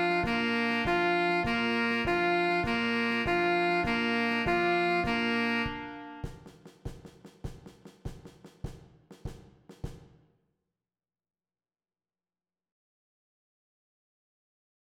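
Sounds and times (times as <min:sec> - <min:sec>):
alto saxophone: 0:00.0 - 0:06.4.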